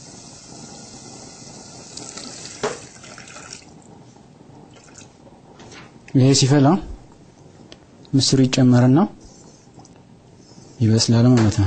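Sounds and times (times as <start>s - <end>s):
half a litre of water poured into a cooking pot: 0.0s - 3.8s, 4.7s - 5.1s
speech: 6.1s - 6.9s, 8.1s - 9.2s, 10.8s - 11.6s.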